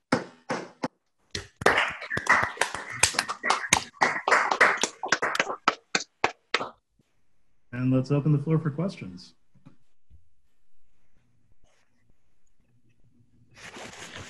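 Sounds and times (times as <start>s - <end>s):
scattered hand claps after a talk at an online seminar: 1.4s - 6.8s
speech: 8.0s - 9.4s.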